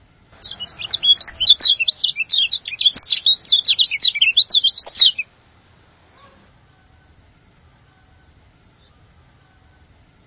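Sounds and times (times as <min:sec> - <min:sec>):
bird twittering: 0:00.4 - 0:05.3.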